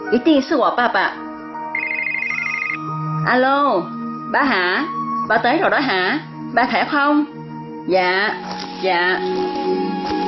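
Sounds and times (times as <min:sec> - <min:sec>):
speech: 0:00.1 - 0:01.2, 0:02.7 - 0:10.2
telephone ringing with electronic ringtone: 0:01.7 - 0:02.9.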